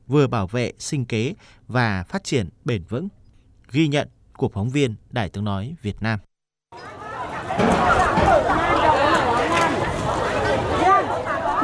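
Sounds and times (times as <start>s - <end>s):
speech: 0.1s - 7.0s, 7.6s - 9.0s
boat engines at Nghi Thủy fishing port: 6.8s - 11.6s.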